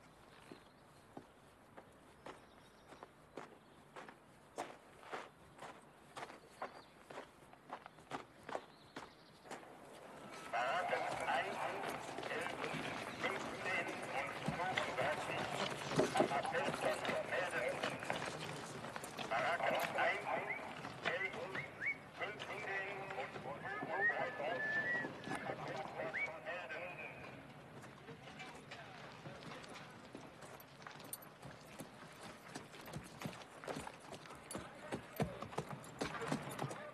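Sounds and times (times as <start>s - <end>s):
busy noise: 0.0s - 36.9s
footsteps of someone walking behind another person: 0.1s - 36.6s
voices: 9.5s - 30.2s.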